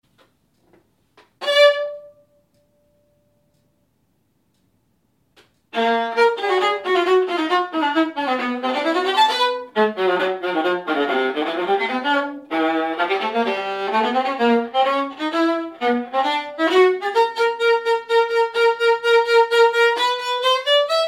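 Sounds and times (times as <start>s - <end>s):
viola: 1.2s - 2.6s, 5.7s - 21.0s.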